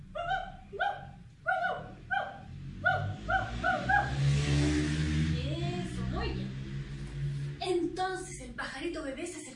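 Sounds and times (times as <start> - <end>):
voices imitating a dog barking: 0.0 - 4.3
low rumble: 0.0 - 9.2.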